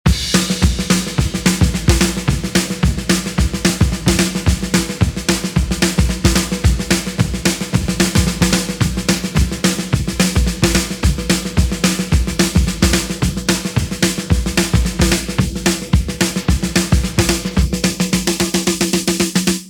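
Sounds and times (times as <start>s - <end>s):
drum pattern: 0.0s - 19.6s.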